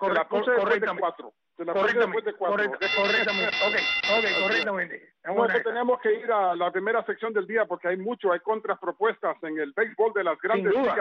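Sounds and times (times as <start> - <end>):
speech: 0.0 - 10.9
bell sound effect ringing: 2.8 - 4.7.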